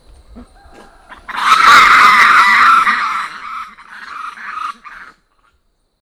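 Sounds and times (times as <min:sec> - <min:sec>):
black lemur crying: 0:00.0 - 0:05.2.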